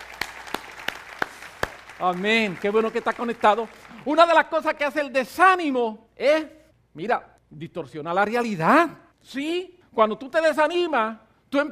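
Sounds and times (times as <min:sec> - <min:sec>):
crisp claps: 0:00.0 - 0:04.1
speech: 0:02.0 - 0:11.7.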